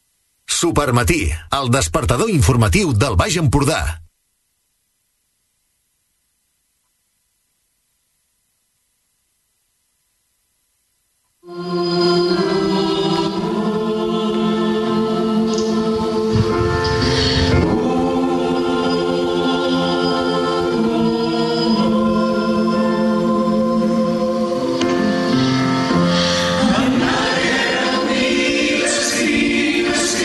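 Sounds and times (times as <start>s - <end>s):
speech: 0.6s - 4.0s
choir singing, each member recorded from home: 11.5s - 30.2s.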